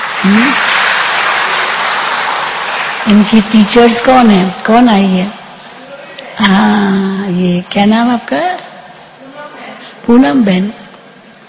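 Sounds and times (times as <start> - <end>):
audience clapping: 0.0 - 4.4
speech: 0.2 - 0.7, 3.1 - 5.4, 6.4 - 8.6, 10.1 - 10.8.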